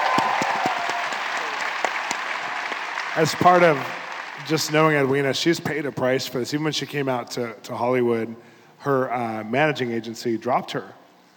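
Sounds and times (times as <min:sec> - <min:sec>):
audience clapping: 0:00.0 - 0:05.6
speech: 0:03.2 - 0:11.0.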